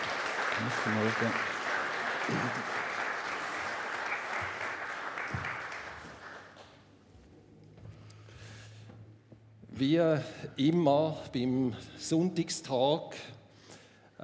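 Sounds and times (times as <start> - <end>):
audience applause: 0.0 - 6.8
speech: 0.6 - 1.6, 2.3 - 2.8, 9.8 - 13.4.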